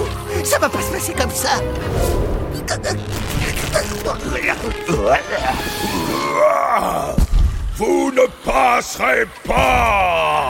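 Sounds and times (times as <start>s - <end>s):
speech: 0.4s - 7.2s, 7.8s - 10.4s
zombie groaning: 2.6s - 7.2s.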